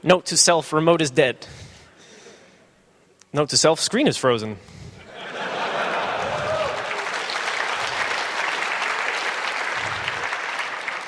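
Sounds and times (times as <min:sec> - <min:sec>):
speech: 0:00.0 - 0:01.6, 0:03.3 - 0:04.8
laughter: 0:05.0 - 0:08.1
crowd clapping: 0:05.7 - 0:11.0.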